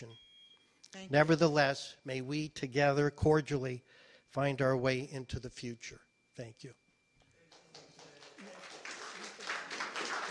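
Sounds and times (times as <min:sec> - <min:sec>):
speech: 0:00.0 - 0:00.3, 0:00.9 - 0:06.8
audience clapping: 0:07.4 - 0:10.3.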